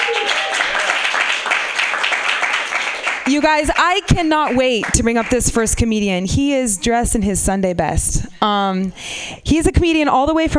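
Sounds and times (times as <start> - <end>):
audience applause: 0.0 - 3.5
speech: 3.3 - 10.5.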